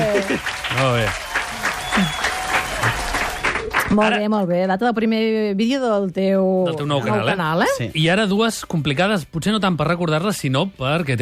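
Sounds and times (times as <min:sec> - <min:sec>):
voices whooping and calling out: 0:00.0 - 0:03.6
clapping: 0:00.0 - 0:04.0
speech: 0:00.2 - 0:01.3, 0:02.0 - 0:02.2, 0:03.9 - 0:11.2.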